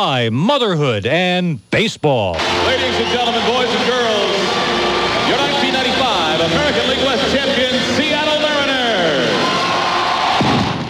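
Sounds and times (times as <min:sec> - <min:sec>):
speech: 0:00.0 - 0:04.5, 0:06.4 - 0:09.6
crowd roaring inside Seattle's Kingdome at the Mariners' opening day game: 0:02.4 - 0:10.8.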